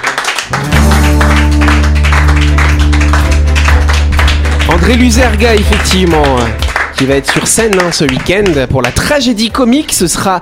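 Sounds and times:
audience applause: 0:00.0 - 0:09.0
steady loud low musical tone: 0:00.5 - 0:07.7
speech: 0:04.9 - 0:10.4.

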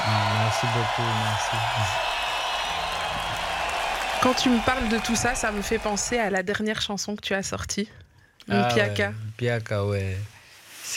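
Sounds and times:
audience applause: 0:00.0 - 0:06.4
speech: 0:00.6 - 0:02.2, 0:04.2 - 0:10.9.

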